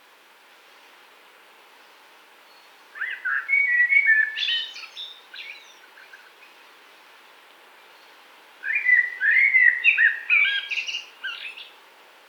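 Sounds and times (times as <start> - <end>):
Eurasian blackbird song phrase: 2.5 - 6.3, 8.6 - 11.7.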